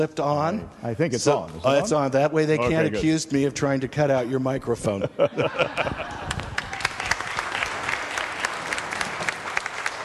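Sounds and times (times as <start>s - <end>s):
speech: 0.0s - 6.4s
laughter: 4.8s - 6.8s
audience applause: 6.0s - 10.0s.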